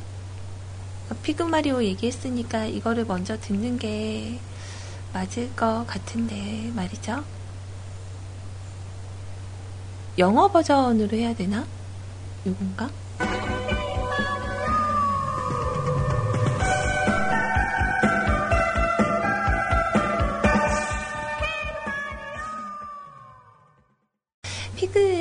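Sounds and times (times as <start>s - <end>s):
speech: 1.1s - 4.5s, 5.1s - 7.4s, 10.2s - 11.8s, 12.4s - 13.4s
upbeat cartoon opening theme music: 13.2s - 23.3s
singing voice: 14.0s - 16.6s, 20.7s - 23.6s.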